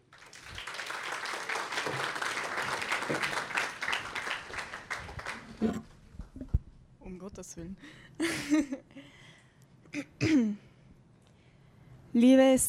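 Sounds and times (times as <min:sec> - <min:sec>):
audience applause: 0:00.0 - 0:05.8
speech: 0:07.4 - 0:08.9, 0:12.2 - 0:12.6.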